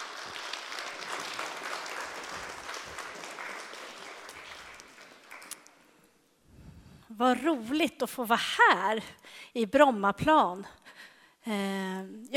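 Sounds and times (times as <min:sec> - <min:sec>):
audience applause: 0:00.0 - 0:05.9
speech: 0:07.2 - 0:10.8, 0:11.4 - 0:12.3.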